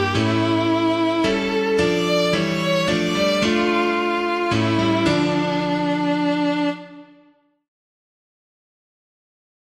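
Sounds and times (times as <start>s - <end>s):
piano: 0.0s - 7.6s.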